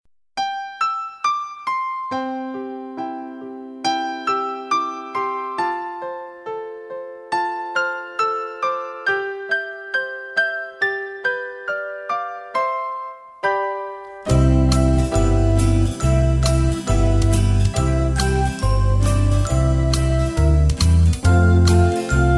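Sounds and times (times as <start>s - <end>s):
slow tune: 0.4s - 22.3s.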